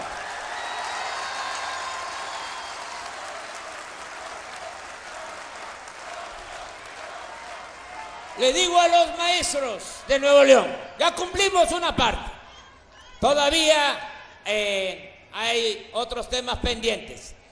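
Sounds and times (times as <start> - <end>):
audience applause: 0.0 - 10.0
speech: 8.4 - 12.3, 13.2 - 17.4.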